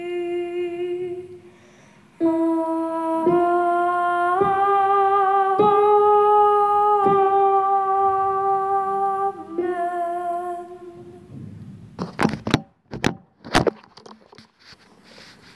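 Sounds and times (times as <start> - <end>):
singing voice: 0.0 - 11.8.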